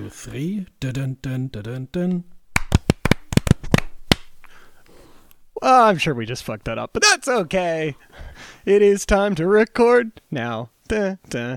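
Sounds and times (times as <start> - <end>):
speech: 0.1 - 2.4, 5.6 - 11.5
hands clapping together: 2.6 - 4.3.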